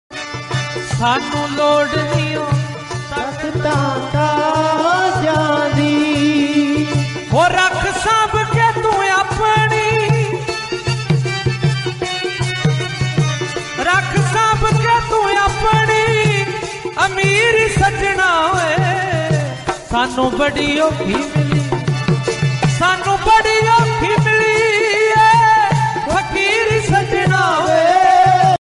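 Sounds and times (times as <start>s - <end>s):
Punjabi music: 0.1s - 28.6s.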